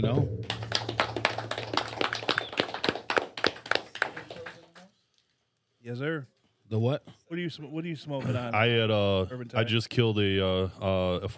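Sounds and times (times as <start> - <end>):
speech: 0.0 - 0.5, 5.9 - 11.3
round of applause: 0.4 - 4.9.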